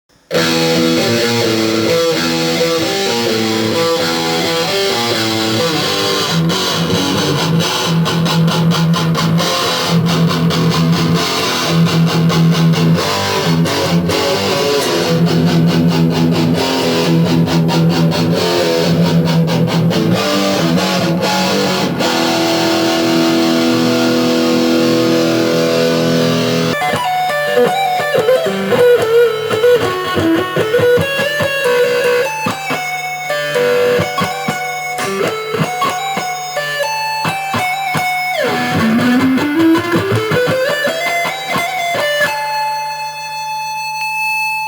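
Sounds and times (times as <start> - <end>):
electric guitar: 0.1 - 44.6.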